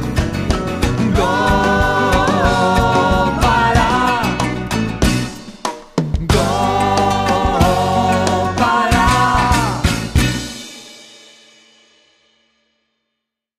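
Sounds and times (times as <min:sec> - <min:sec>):
bhajan devotional song: 0:00.7 - 0:05.4, 0:06.3 - 0:10.6.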